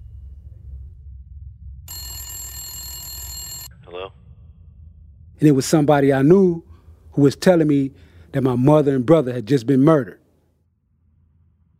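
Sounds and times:
telephone bell ringing: 1.9 - 3.8
speech: 5.4 - 10.2.

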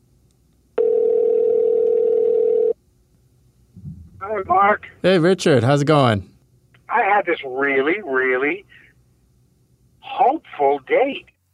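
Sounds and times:
telephone dial tone: 0.8 - 2.8
speech: 4.3 - 6.3, 6.9 - 8.8, 10.0 - 11.3.

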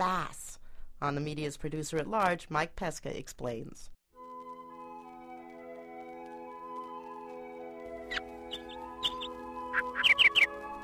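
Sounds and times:
speech: 1.0 - 4.0
birds chirping in the early morning: 7.8 - 10.8.

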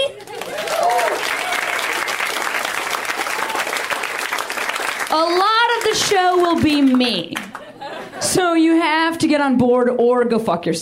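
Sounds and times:
audience applause: 0.2 - 7.7
speech: 5.1 - 7.4, 8.2 - 10.8
laughter: 7.4 - 8.4.

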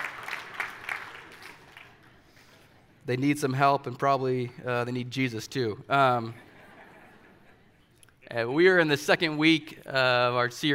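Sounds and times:
crowd applauding and cheering: 0.0 - 2.3
speech: 3.1 - 6.4, 8.3 - 10.7
laughter: 6.2 - 7.9.

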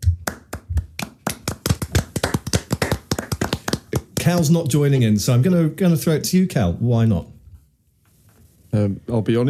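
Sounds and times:
round of applause: 0.3 - 4.5
speech: 4.3 - 7.4, 8.7 - 9.4.

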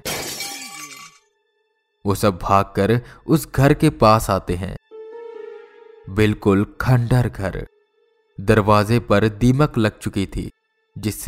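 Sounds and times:
cricket ball crashing into a house, shattering glass: 0.0 - 1.3
speech: 2.0 - 4.8, 6.1 - 7.7, 8.4 - 11.2.

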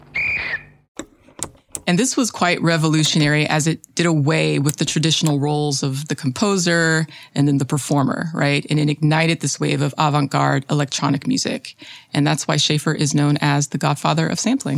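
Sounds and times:
tape-recorded train whistle bursts: 0.2 - 0.8
speech: 2.0 - 14.7.

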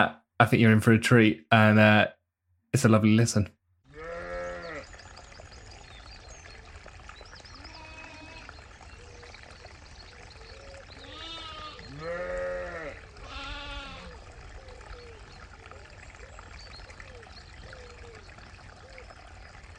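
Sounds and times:
speech: 0.0 - 3.6
lambs and ewes bleating in the spring countryside: 3.9 - 4.8, 7.6 - 8.5, 11.0 - 14.1.

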